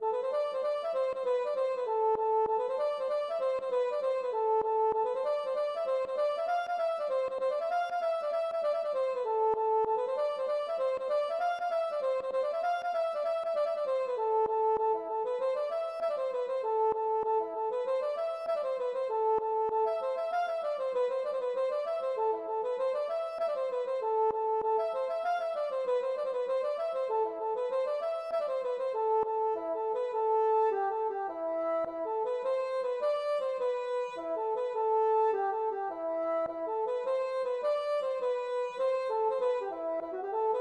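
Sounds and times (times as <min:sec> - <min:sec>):
gavotte: 0:00.0 - 0:40.6.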